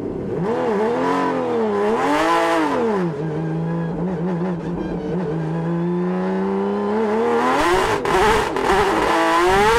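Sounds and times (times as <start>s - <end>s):
Porsche 911 RSR 4.0-liter flat-six engine revving in-car: 0.1s - 9.7s.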